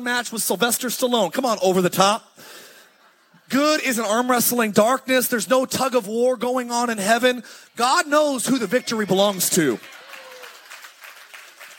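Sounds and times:
speech: 0:00.0 - 0:02.6, 0:03.5 - 0:10.0
audience clapping: 0:09.0 - 0:11.7.

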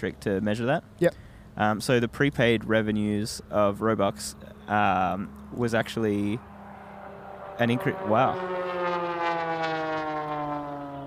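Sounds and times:
speech: 0:00.0 - 0:06.5, 0:07.6 - 0:08.6
airplane passing: 0:03.1 - 0:11.0.

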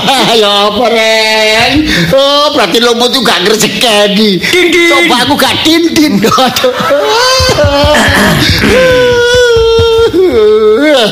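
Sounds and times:
speech: 0:00.3 - 0:09.0, 0:10.3 - 0:11.1
laughter: 0:06.2 - 0:11.0
person crying loudly: 0:06.8 - 0:11.1.

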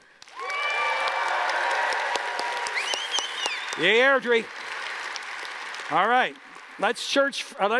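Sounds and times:
audience applauding: 0:00.2 - 0:07.7
audience cheering: 0:00.3 - 0:04.4
speech: 0:03.8 - 0:04.6, 0:05.9 - 0:07.7.

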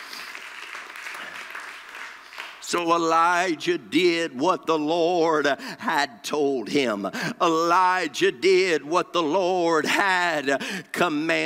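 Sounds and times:
audience hand clapping: 0:00.0 - 0:03.2
speech: 0:02.7 - 0:11.4.

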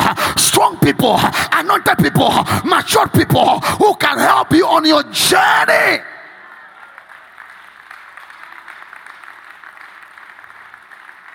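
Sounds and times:
speech: 0:00.8 - 0:06.2
crowd clapping: 0:06.3 - 0:11.3.

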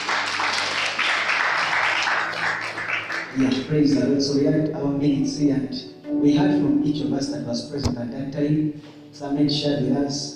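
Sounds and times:
applause: 0:00.0 - 0:04.0
speech: 0:03.4 - 0:10.3.

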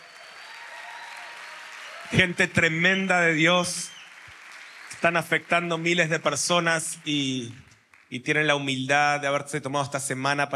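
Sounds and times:
audience applause: 0:00.0 - 0:08.4
speech: 0:02.0 - 0:04.0, 0:05.0 - 0:10.5.

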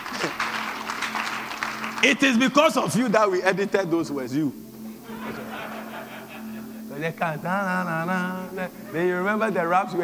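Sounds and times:
laughter: 0:00.0 - 0:00.7, 0:05.0 - 0:07.8
audience clapping: 0:00.0 - 0:03.0
speech: 0:02.0 - 0:04.7, 0:07.0 - 0:10.0.

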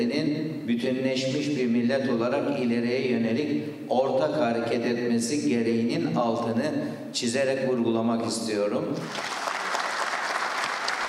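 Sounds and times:
speech: 0:00.0 - 0:09.4
audience applause in a hall: 0:09.0 - 0:11.0.

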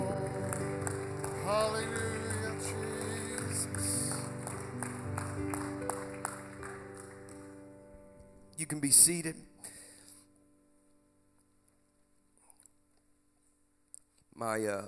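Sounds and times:
crowd clapping in a steady rhythmic beat: 0:00.0 - 0:07.6
sustained organ-like music: 0:00.0 - 0:07.9
speech: 0:01.5 - 0:02.1, 0:08.7 - 0:09.5, 0:14.4 - 0:14.8.

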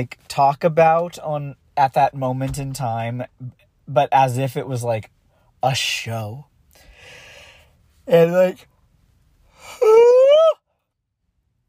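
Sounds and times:
speech: 0:00.0 - 0:06.5, 0:08.1 - 0:08.7
human yawn: 0:09.6 - 0:10.6.

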